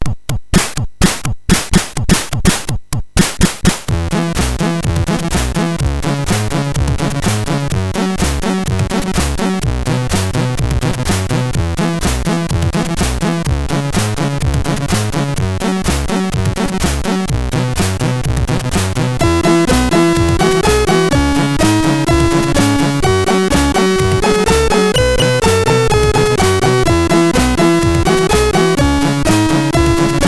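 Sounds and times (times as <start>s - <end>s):
dance music on SID MOS6581R4 chip: 0.0s - 30.2s.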